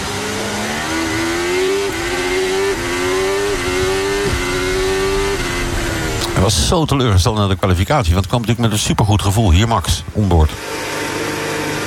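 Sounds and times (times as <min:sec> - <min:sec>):
racing car accelerating hard from the start with gear changes: 0:00.0 - 0:07.4, 0:10.5 - 0:11.8
speech: 0:06.5 - 0:11.0.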